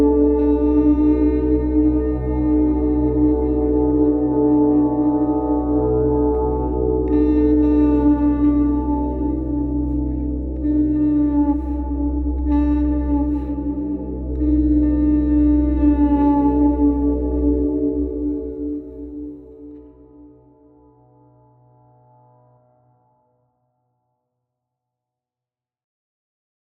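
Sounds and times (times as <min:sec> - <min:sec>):
pukaea horn: 0:00.0 - 0:20.3.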